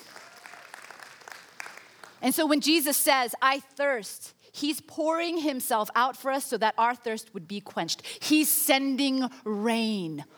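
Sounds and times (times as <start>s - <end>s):
audience clapping: 0.0s - 2.2s
speech: 2.2s - 10.3s.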